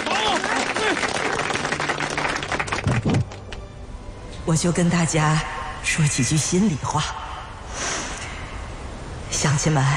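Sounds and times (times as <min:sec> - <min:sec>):
villagers applauding at a New Year opening ceremony: 0:00.0 - 0:03.5
speech: 0:04.5 - 0:07.2, 0:09.4 - 0:09.9.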